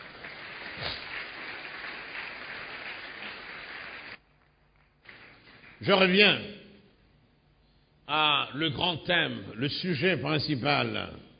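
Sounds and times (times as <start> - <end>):
congregation applauding during a French-language church service: 0.0 - 6.2
speech: 5.8 - 6.6, 8.6 - 11.3.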